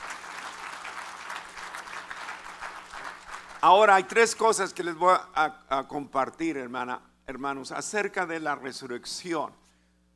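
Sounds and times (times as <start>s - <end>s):
audience applauding loudly: 0.0s - 4.2s
speech: 3.6s - 9.6s.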